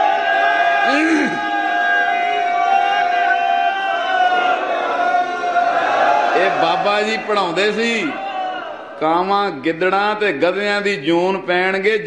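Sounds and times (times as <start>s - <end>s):
Sikhs shouting a jaikara war cry: 0.0s - 9.0s
speech: 6.8s - 8.2s, 9.0s - 12.0s.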